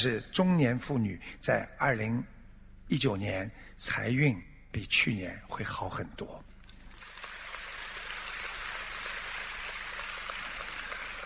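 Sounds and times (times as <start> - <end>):
speech: 0.0 - 2.3, 2.9 - 6.5
crowd applause: 6.9 - 11.2.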